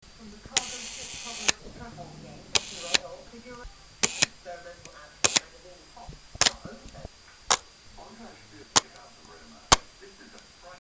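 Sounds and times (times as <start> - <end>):
Compur camera shutter: 0.6 - 1.6, 2.6 - 3.0, 4.0 - 4.4, 5.2 - 5.5.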